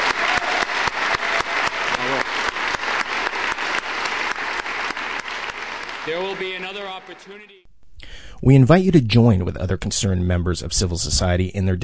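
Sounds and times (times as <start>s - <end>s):
crowd applause: 0.0s - 7.6s
speech: 6.1s - 7.7s, 8.4s - 11.8s.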